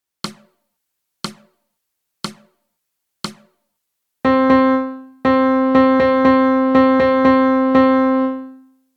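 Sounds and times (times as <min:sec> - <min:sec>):
melody: 0:04.3 - 0:08.7.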